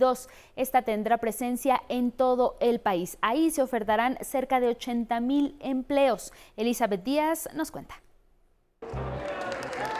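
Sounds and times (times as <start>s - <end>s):
speech: 0.0s - 8.0s
applause at job fair inauguration: 8.8s - 9.9s.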